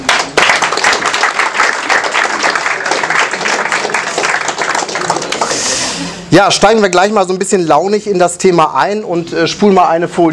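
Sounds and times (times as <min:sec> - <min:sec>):
audience applause: 0:00.0 - 0:06.0
speech: 0:06.3 - 0:10.3.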